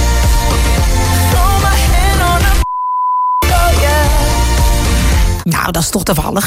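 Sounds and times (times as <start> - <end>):
loud pop song with singing: 0.0 - 5.4
single-pitched bleep censoring a word in a song: 2.6 - 3.5
speech: 5.7 - 6.4.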